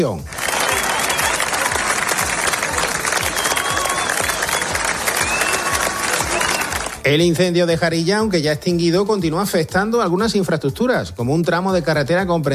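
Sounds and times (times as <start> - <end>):
speech: 0.0 - 0.4, 7.0 - 12.5
neighbours applauding firefighters: 0.0 - 7.2.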